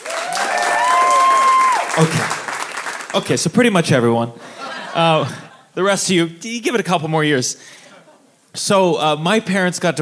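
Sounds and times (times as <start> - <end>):
crowd audience round of applause: 0.0 - 3.3
speech: 2.0 - 2.4, 3.1 - 7.8, 8.5 - 10.0.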